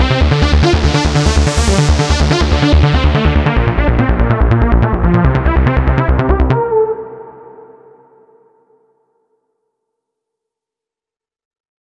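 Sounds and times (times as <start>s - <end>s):
trance synth lead: 0.0s - 7.6s.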